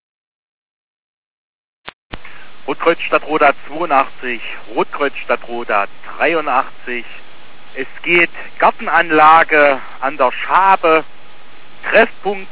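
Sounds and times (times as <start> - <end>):
radio static: 2.2 - 11.1
speech: 2.9 - 11.2, 11.8 - 12.5.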